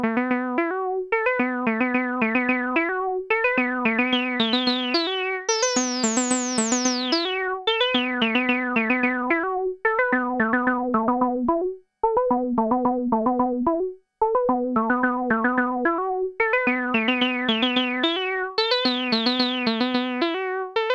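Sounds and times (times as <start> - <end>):
NTS-1 mkII synth lead with filter: 0.2 - 20.8.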